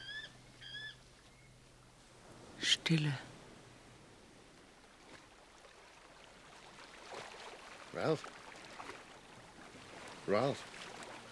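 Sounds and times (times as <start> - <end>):
bird cry: 0.0 - 1.6
speech: 2.7 - 3.3, 8.0 - 8.4, 10.3 - 10.7.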